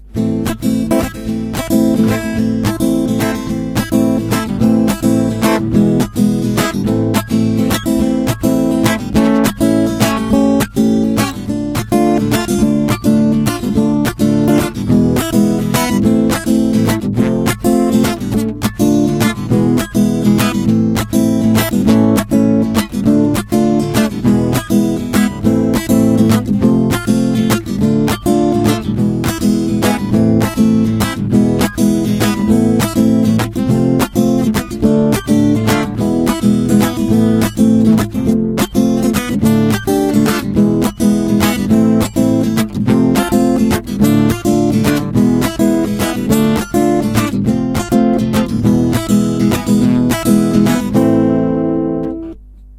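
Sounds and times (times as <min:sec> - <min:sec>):
guitar: 0:00.0 - 0:52.7.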